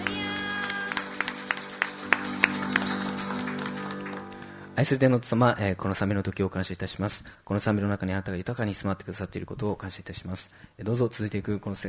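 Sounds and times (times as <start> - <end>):
audience applause: 0.0 - 4.8
speech: 4.8 - 11.8.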